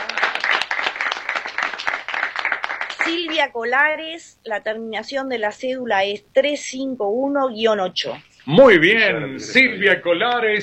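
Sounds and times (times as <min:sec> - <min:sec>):
audience applause: 0:00.0 - 0:03.4
speech: 0:03.1 - 0:10.6.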